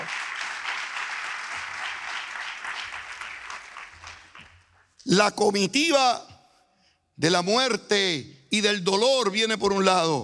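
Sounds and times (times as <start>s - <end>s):
audience applause: 0.0s - 4.7s
speech: 5.1s - 6.3s, 7.2s - 10.2s.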